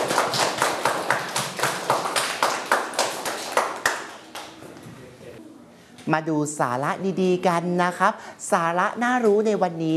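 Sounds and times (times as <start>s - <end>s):
students clapping for a classmate: 0.0s - 4.6s
speech: 6.1s - 9.9s.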